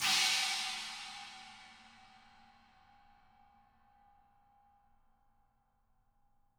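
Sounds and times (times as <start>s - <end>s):
china crash cymbal: 0.0s - 2.6s.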